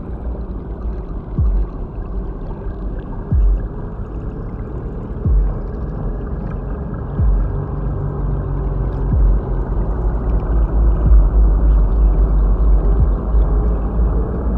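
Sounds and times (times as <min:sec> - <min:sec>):
space station ambient low hum and rumble: 0:00.0 - 0:14.5.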